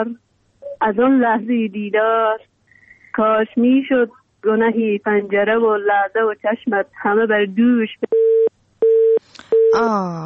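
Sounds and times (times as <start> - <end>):
speech: 0.0 - 2.5, 3.2 - 8.2, 9.7 - 10.2
busy tone after a phone call is cut off: 8.1 - 9.8.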